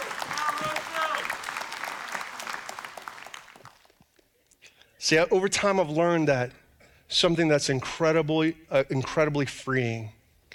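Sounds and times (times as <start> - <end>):
audience round of applause: 0.0 - 4.0
speech: 5.1 - 10.2.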